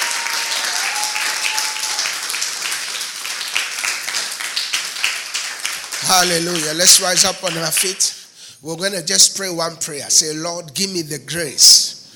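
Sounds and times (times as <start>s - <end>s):
audience clapping in praise: 0.0s - 8.2s
speech: 6.0s - 12.0s.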